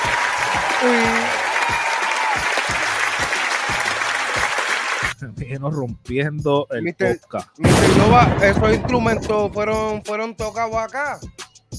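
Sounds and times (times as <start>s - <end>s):
applause: 0.0s - 5.2s
speech: 0.8s - 1.4s, 5.6s - 11.4s.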